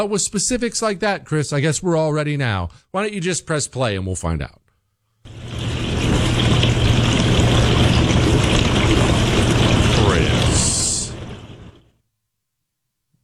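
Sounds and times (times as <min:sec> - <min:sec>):
speech: 0:00.0 - 0:04.6
dishwasher running: 0:05.3 - 0:11.9.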